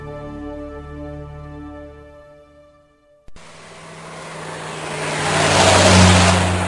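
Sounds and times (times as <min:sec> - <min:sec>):
race car engine revving: 0:03.3 - 0:06.6.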